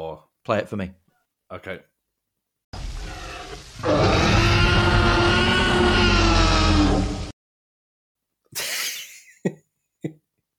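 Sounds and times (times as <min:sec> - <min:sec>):
speech: 0:00.2 - 0:01.9, 0:03.8 - 0:04.1
T-Rex roar sound effect: 0:02.8 - 0:07.3.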